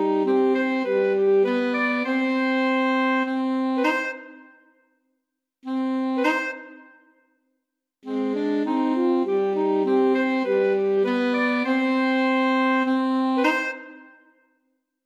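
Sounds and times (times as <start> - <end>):
alto sax trio: 0.0 - 4.4, 5.7 - 6.8, 8.0 - 14.1.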